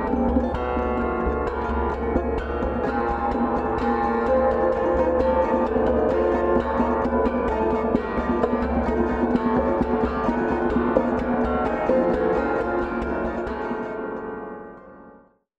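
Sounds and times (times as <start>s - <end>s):
drumming on a harp: 0.0s - 13.6s.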